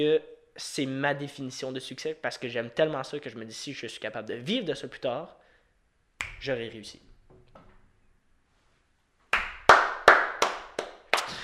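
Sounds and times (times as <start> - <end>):
speech: 0.0 - 5.4, 6.4 - 7.0
soft hand claps: 9.3 - 11.4.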